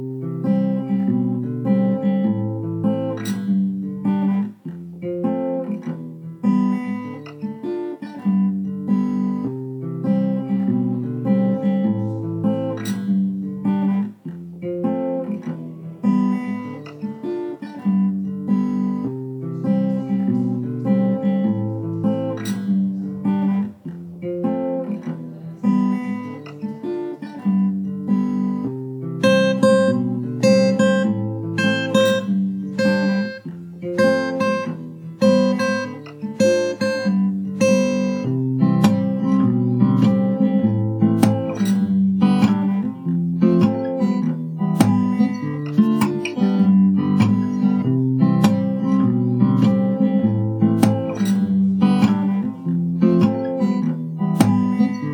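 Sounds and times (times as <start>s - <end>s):
instrumental music: 0.0s - 55.1s.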